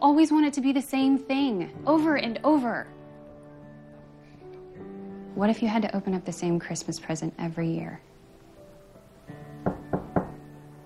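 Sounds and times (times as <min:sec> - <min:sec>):
speech: 0:00.0 - 0:03.0, 0:05.4 - 0:08.1
knocking on a door: 0:09.6 - 0:10.5.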